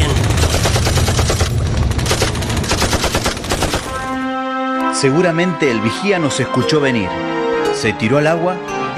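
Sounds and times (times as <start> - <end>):
low rumble: 0.0 - 3.7
sustained machine gun fire: 0.0 - 4.2
speech: 5.0 - 8.9.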